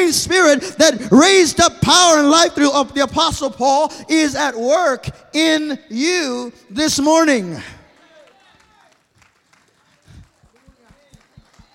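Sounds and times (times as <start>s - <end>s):
speech: 0.0s - 7.8s
audience clapping weakly: 7.8s - 11.7s.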